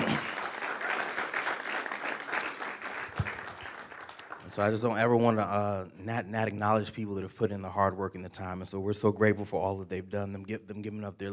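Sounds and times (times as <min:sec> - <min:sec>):
audience round of applause: 0:00.0 - 0:04.7
speech: 0:04.6 - 0:11.3.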